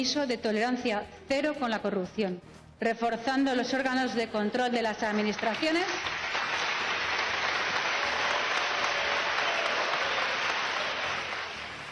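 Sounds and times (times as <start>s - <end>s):
speech: 0.0s - 6.1s
applause from parliament deputies: 5.0s - 11.9s.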